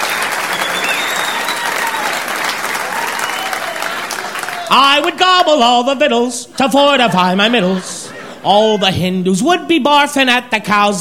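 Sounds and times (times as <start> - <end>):
crowd applause: 0.0 - 5.1
speech: 4.7 - 10.9
laughter: 6.4 - 9.2.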